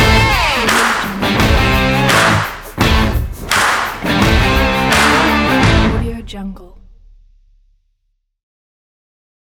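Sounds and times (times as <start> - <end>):
sport rock music: 0.0 - 6.4.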